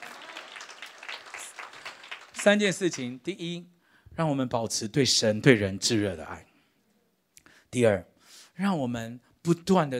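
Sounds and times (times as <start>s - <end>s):
audience applause: 0.0s - 3.2s
speech: 2.4s - 6.5s, 7.7s - 9.9s.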